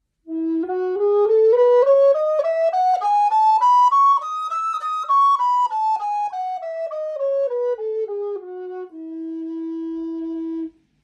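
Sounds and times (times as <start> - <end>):
alto recorder in F: 0.2 - 10.8.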